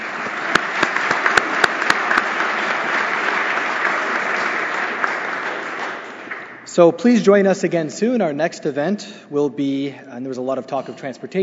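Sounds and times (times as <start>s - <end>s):
audience applause: 0.0s - 6.6s
speech: 6.8s - 11.4s.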